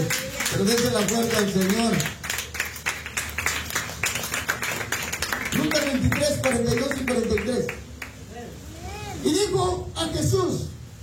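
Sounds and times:
speech: 0:00.0 - 0:02.2, 0:06.4 - 0:07.8, 0:09.2 - 0:10.8
audience clapping as an offering to God: 0:00.0 - 0:08.2.

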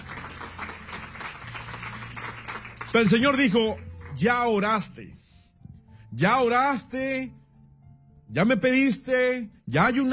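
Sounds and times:
church congregation applauding: 0:00.0 - 0:04.6
speech: 0:02.9 - 0:05.2, 0:06.1 - 0:07.4, 0:08.3 - 0:10.1.

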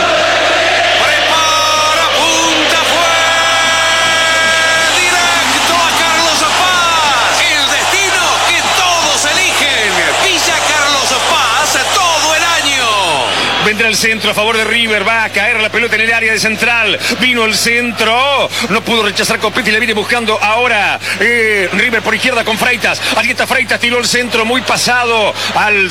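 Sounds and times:
stadium crowd of fans shouting and celebrating: 0:00.0 - 0:25.9
speech: 0:13.9 - 0:25.9.

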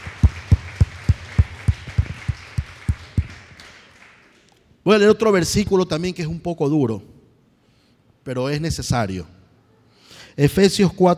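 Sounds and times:
audience applause: 0:00.0 - 0:04.4
speech: 0:04.9 - 0:07.2, 0:08.2 - 0:09.4, 0:10.4 - 0:11.1.

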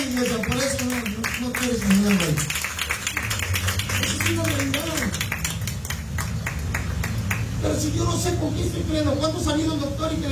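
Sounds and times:
audience clapping hands: 0:00.0 - 0:07.6
speech: 0:08.3 - 0:10.3.

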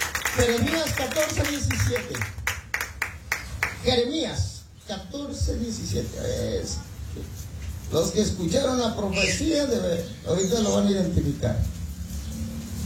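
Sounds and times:
crowd clapping: 0:00.0 - 0:03.8
speech: 0:00.4 - 0:02.4, 0:03.8 - 0:11.8.

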